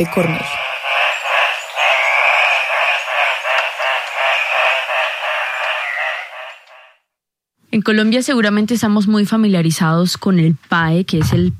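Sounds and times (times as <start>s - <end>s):
speech: 0.0s - 0.6s, 7.8s - 11.5s
Andean cock-of-the-rock call: 0.0s - 7.0s.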